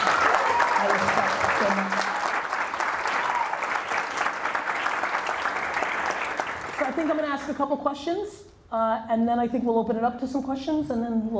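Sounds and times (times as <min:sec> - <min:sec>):
audience applause: 0:00.0 - 0:07.3
speech: 0:07.0 - 0:11.3.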